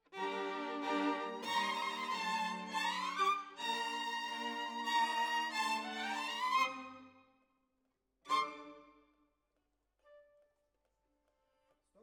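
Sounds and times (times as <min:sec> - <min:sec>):
violins: 0:00.1 - 0:07.2, 0:08.3 - 0:09.0.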